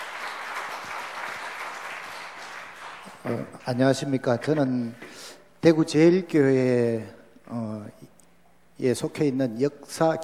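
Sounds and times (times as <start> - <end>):
room full of people clapping: 0.0 - 4.6
speech: 3.2 - 8.2, 8.8 - 10.2.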